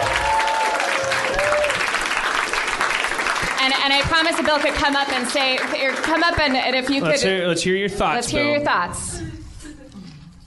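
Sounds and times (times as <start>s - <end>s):
audience applause: 0.0s - 7.3s
speech: 4.1s - 9.3s.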